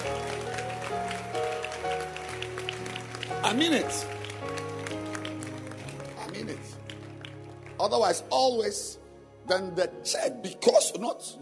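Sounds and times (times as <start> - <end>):
audience clapping: 0.0 - 8.5
speech: 3.5 - 4.2, 7.8 - 11.4.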